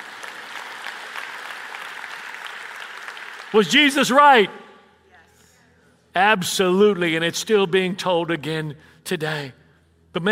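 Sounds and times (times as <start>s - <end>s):
audience clapping: 0.0s - 4.4s
speech: 3.5s - 4.6s, 6.2s - 10.3s.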